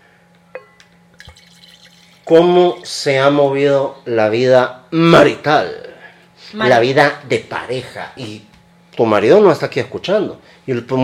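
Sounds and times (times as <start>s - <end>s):
wine being poured into a glass: 1.1s - 2.9s
speech: 2.3s - 11.0s.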